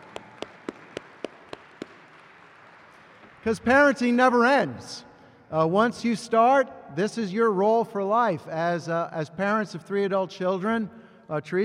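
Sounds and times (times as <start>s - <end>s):
crisp hand claps: 0.0s - 3.8s
speech: 3.4s - 11.6s.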